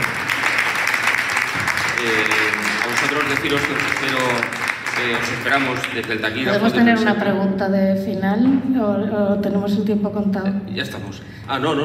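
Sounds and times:
audience applause: 0.0 - 6.8
speech: 3.0 - 11.8.

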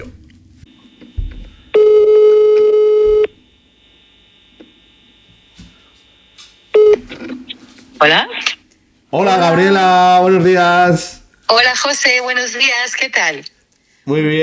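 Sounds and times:
telephone call ringing tone: 0.7 - 3.5, 6.7 - 7.3
speech: 8.0 - 8.4, 9.1 - 14.4.

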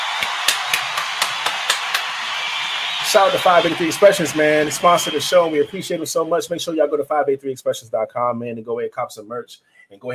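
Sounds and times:
round of applause: 0.0 - 6.6
speech: 3.1 - 10.1.

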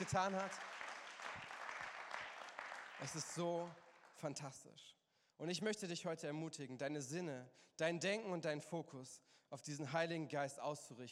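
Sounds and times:
speech: 0.0 - 0.7, 3.0 - 11.1
audience applause: 0.0 - 4.2.

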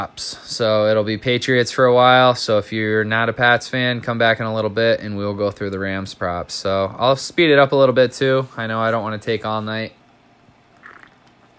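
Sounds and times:
speech: 0.0 - 10.0
sipping beer: 10.8 - 11.4.

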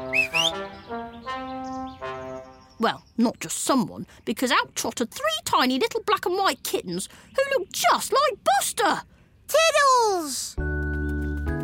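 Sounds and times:
person whistling to call someone: 0.0 - 0.6
speech: 2.8 - 10.7.

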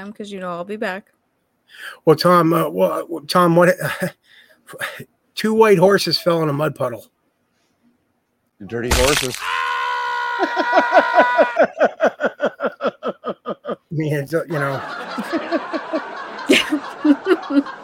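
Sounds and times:
speech: 0.0 - 7.2, 8.6 - 9.6, 10.4 - 12.9, 13.7 - 17.8
canned laugh track of a crowd laughing: 1.9 - 4.1, 10.2 - 17.8.

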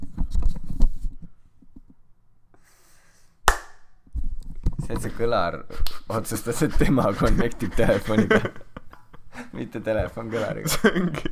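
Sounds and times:
single sharp hand clap: 3.5 - 4.0, 5.8 - 6.1
speech: 4.9 - 8.6, 9.6 - 11.3
laughter: 6.1 - 11.3.

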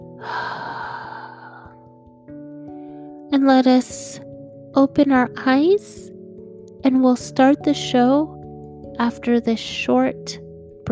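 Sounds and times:
deep breath during a guided breathing pause: 0.2 - 1.8
speech: 3.4 - 6.1, 6.8 - 8.3, 9.0 - 10.9.

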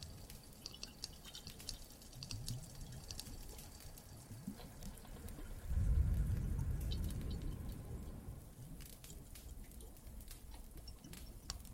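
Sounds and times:
fireplace crackling: 0.0 - 11.7
water drips in a cave: 0.0 - 11.7
low cave rumble: 5.5 - 8.8.

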